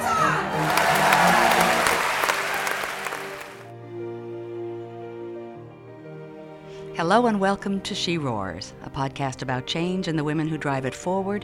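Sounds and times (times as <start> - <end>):
crowd roaring and cheering with applause: 0.0 - 3.7
sustained musical tone: 0.0 - 7.7
speech: 7.0 - 11.4.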